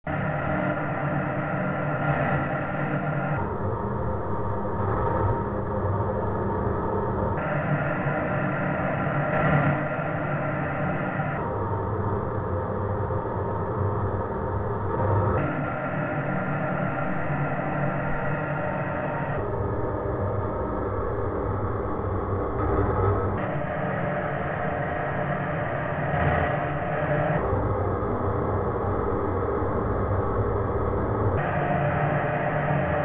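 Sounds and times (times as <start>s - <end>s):
white noise: 0.1s - 6.4s, 7.2s - 33.0s.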